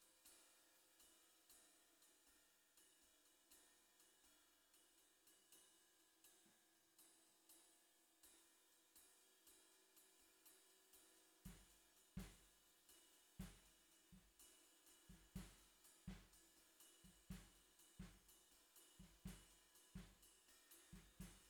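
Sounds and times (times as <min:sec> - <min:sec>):
bottom snare drum: 0:11.5 - 0:12.5, 0:13.4 - 0:13.8, 0:15.1 - 0:16.4, 0:17.0 - 0:18.3, 0:19.0 - 0:21.4.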